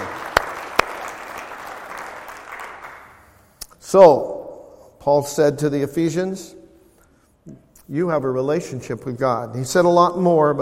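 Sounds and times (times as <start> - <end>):
audience applause: 0.0 - 3.2
speech: 3.9 - 4.3, 5.0 - 6.6, 7.4 - 10.5.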